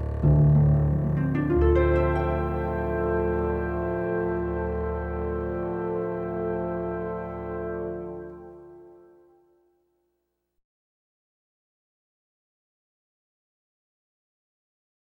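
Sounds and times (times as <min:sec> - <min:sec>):
bass solo: 0:00.0 - 0:08.4.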